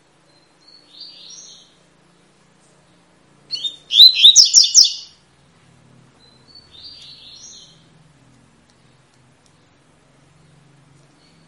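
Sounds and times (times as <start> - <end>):
Double-collared seedeater warbled song: 3.6 - 5.1.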